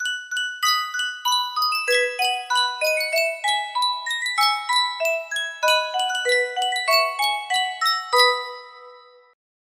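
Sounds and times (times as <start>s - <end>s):
Sankyo miniature music box: 0.0s - 9.4s.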